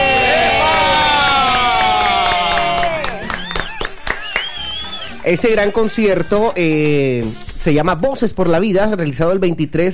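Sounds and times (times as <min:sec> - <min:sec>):
crowd clapping: 0:00.0 - 0:06.4
crowd cheering with whoops and shouts: 0:00.0 - 0:06.9
speech: 0:05.3 - 0:09.9.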